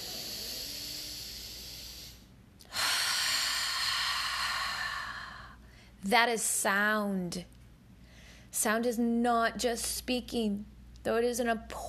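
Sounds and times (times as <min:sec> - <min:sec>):
deep inhaled breath: 0:00.0 - 0:06.0
speech: 0:06.0 - 0:07.6, 0:08.6 - 0:11.8.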